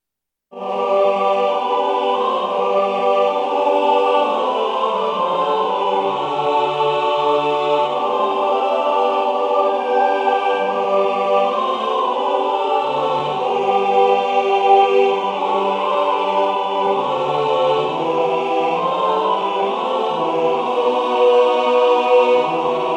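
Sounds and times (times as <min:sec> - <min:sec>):
full choir singing: 0:00.5 - 0:22.9.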